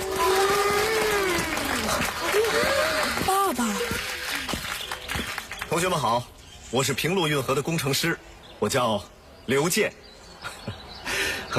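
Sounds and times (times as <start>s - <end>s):
crowd clapping: 0.0s - 6.1s
speech: 5.8s - 10.8s.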